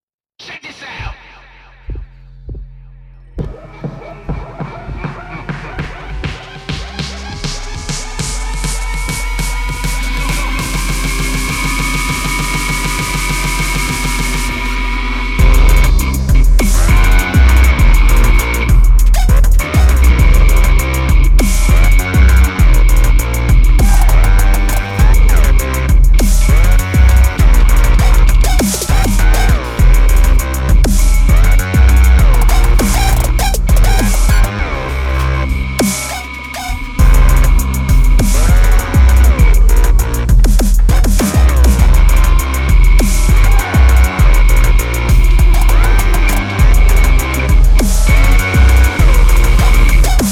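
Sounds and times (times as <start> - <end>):
hip hop music: 0.4 - 50.3.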